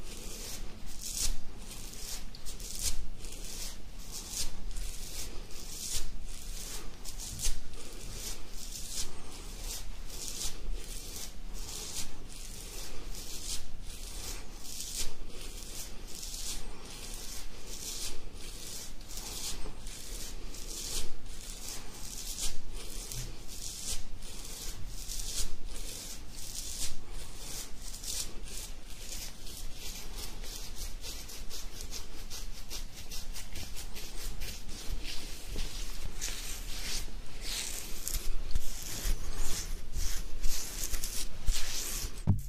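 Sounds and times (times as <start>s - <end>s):
beard scratching: 0.0s - 42.4s.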